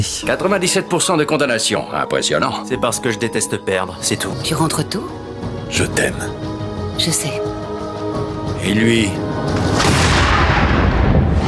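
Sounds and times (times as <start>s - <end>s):
speech: 0.0s - 7.6s, 8.6s - 9.8s
gunshot in an American film: 9.7s - 11.4s.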